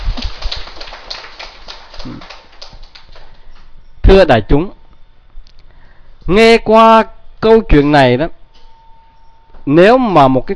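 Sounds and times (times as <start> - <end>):
audience applause: 0.0 - 3.4
speech: 2.0 - 2.4, 4.2 - 4.8, 6.3 - 8.4, 9.6 - 10.5.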